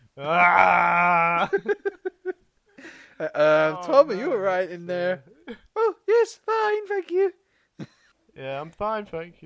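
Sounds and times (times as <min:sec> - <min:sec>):
voice imitating a monster roar: 0:00.2 - 0:01.4
speech: 0:00.2 - 0:02.0, 0:03.2 - 0:05.6, 0:06.2 - 0:07.4, 0:08.4 - 0:09.4.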